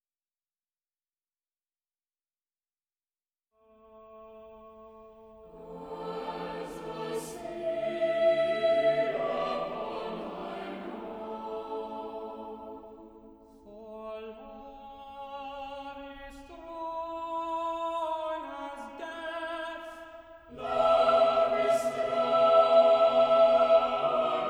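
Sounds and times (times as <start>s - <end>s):
choir singing: 5.4s - 16.4s, 17.1s - 24.4s.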